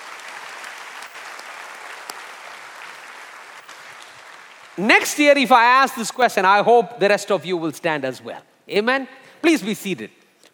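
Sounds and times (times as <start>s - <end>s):
audience applause: 0.0s - 5.1s
speech: 4.8s - 10.2s.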